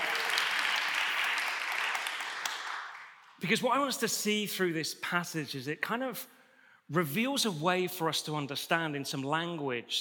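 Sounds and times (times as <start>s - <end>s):
small audience applause: 0.0s - 3.4s
speech: 3.4s - 9.9s.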